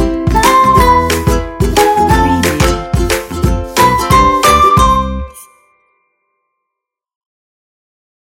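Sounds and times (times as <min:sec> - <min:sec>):
happy ukulele music: 0:00.0 - 0:05.7.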